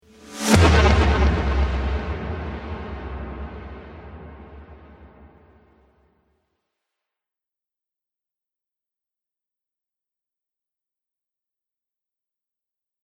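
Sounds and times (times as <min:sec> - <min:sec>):
futuristic trailer hit: 0:00.1 - 0:05.7.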